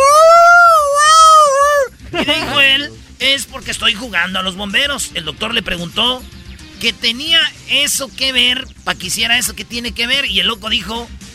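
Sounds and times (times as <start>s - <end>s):
person imitating a howling dog: 0.0s - 1.9s
laughter: 1.6s - 3.0s
speech: 3.3s - 11.2s.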